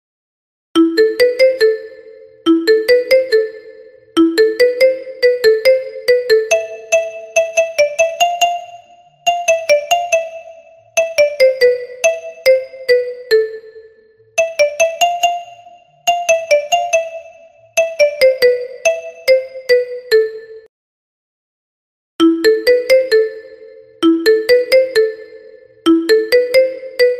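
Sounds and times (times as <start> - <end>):
marimba ringtone: 0.8 - 20.7, 22.2 - 27.1.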